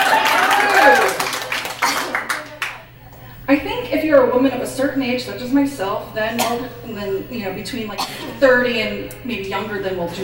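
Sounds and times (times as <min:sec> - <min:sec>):
audience clapping: 0:00.0 - 0:02.9
speech: 0:03.5 - 0:10.2.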